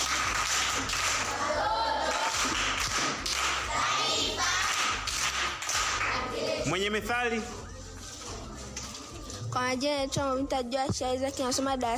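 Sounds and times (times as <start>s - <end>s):
school class applause: 0.0s - 6.4s
speech: 6.9s - 7.6s, 9.5s - 11.9s.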